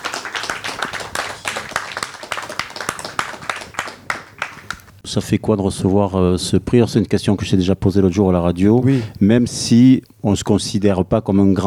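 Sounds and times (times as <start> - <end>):
audience applause: 0.0 - 4.9
speech: 5.1 - 11.6.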